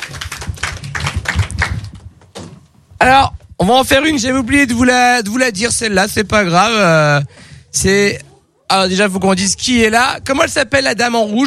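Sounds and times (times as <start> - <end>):
scattered applause after an improv comedy scene: 0.0 - 2.0
speech: 3.0 - 11.4.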